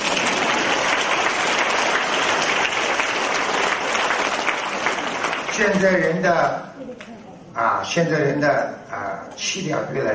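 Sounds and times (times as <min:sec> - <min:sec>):
audience applause: 0:00.0 - 0:06.2
speech: 0:05.6 - 0:10.1.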